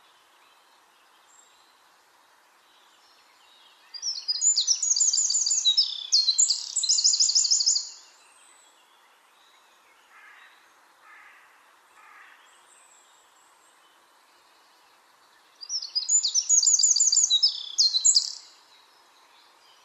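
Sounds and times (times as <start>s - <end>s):
Eurasian wren Troglodytes troglodytes song: 2.8s - 9.9s, 12.1s - 19.8s.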